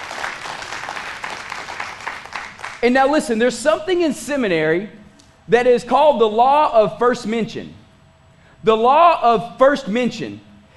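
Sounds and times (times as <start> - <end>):
audience clapping hands: 0.0 - 3.0
speech: 2.8 - 7.8, 8.6 - 10.5.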